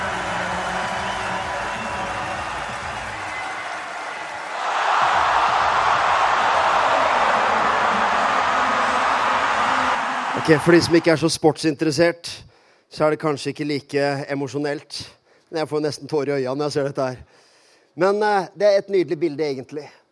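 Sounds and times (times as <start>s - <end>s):
stadium crowd reacting: 0.0s - 11.3s
speech: 10.5s - 17.4s, 18.0s - 20.0s.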